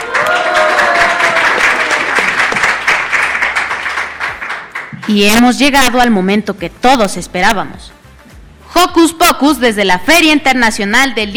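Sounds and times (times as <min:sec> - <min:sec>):
applause: 0:00.0 - 0:05.4
speech: 0:05.1 - 0:08.0, 0:08.8 - 0:11.3.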